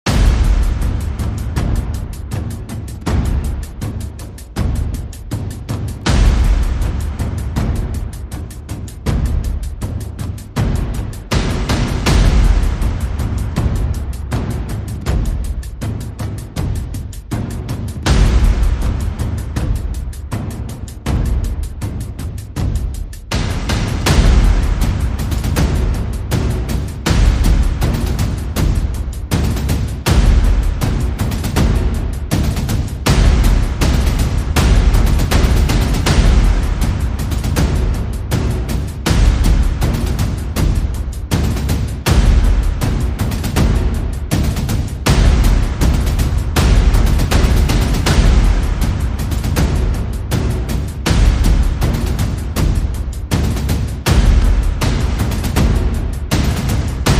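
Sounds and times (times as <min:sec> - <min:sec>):
percussion: 0:00.0 - 0:57.1.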